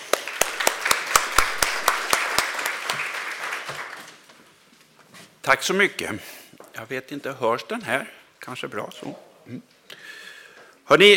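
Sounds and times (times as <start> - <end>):
audience applause welcoming a speaker: 0.0 - 4.2
speech: 5.5 - 9.8, 10.9 - 11.1.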